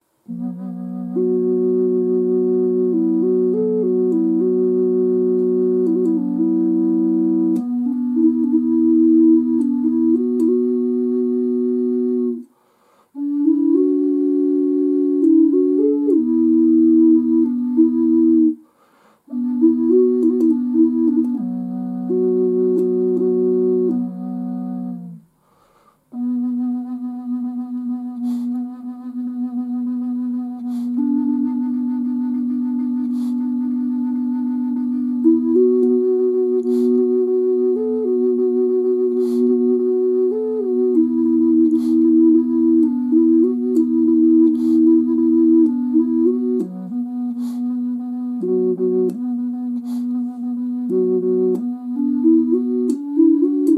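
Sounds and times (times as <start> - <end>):
flute sound test: 0.0 - 53.7.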